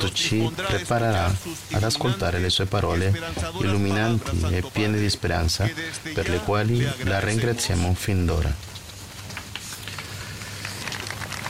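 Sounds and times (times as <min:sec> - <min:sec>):
speech: 0:00.0 - 0:08.8
audience applause: 0:09.9 - 0:11.4.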